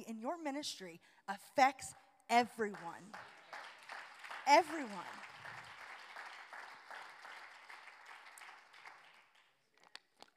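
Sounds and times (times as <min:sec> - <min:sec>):
speech: 0:00.2 - 0:03.4, 0:04.5 - 0:05.3
audience clapping: 0:02.7 - 0:10.3.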